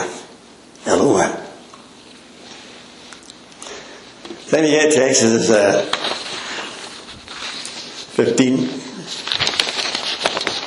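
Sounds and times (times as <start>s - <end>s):
speech: 4.5s - 6.1s, 8.2s - 8.8s
papers being shuffled: 5.6s - 10.6s.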